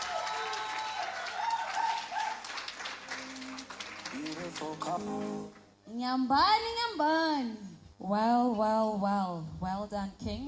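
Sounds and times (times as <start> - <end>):
cheers and whoops: 0.0 - 2.6
audience clapping: 0.0 - 5.8
speech: 4.5 - 10.4.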